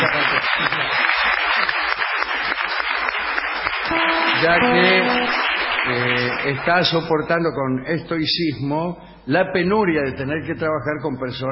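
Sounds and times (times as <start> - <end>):
crowd clapping: 0.0 - 7.0
speech: 4.4 - 11.4.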